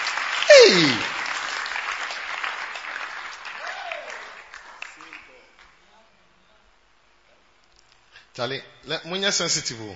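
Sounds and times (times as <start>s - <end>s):
audience clapping: 0.0s - 5.8s
brief vocal tone: 0.5s - 1.1s
speech: 0.5s - 1.2s, 8.4s - 9.9s.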